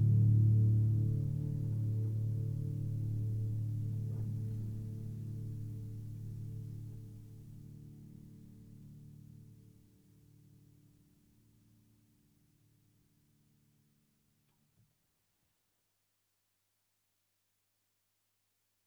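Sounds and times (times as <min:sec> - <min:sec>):
piano arrangement of a Christmas carol: 0:00.0 - 0:10.0.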